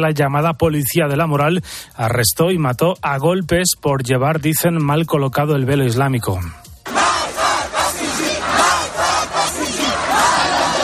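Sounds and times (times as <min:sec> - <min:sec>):
speech: 0:00.0 - 0:06.7
protest crowd chanting in Iran after the death of Mahsa Amini: 0:06.8 - 0:10.8.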